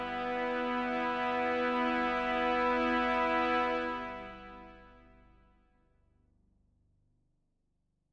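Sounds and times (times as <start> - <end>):
orchestral music: 0.0 - 5.1.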